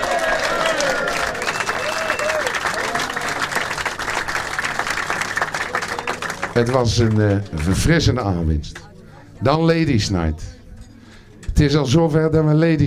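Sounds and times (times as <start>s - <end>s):
audience applause: 0.0s - 8.0s
speech: 6.6s - 8.8s, 9.4s - 10.6s, 11.6s - 12.8s.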